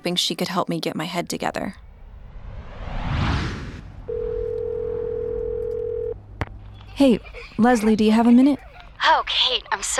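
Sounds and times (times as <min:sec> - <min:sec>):
speech: 0:00.0 - 0:01.9, 0:07.0 - 0:09.9
swelling whoosh: 0:01.8 - 0:04.8
telephone dial tone: 0:04.4 - 0:06.2.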